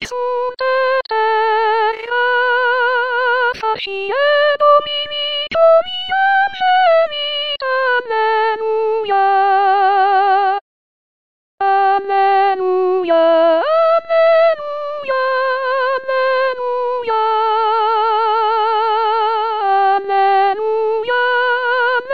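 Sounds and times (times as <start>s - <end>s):
artificial soprano voice: 0.0s - 10.6s, 11.6s - 22.1s.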